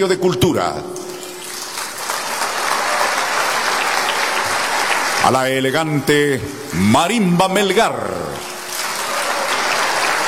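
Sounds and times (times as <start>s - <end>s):
speech: 0.0s - 1.0s, 5.3s - 8.4s
welcoming crowd applause: 1.5s - 5.6s, 8.2s - 10.2s.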